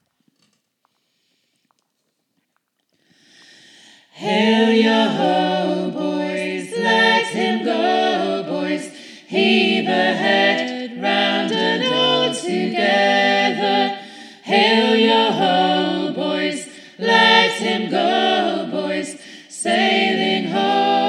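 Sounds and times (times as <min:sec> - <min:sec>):
folk song: 0:03.1 - 0:21.0.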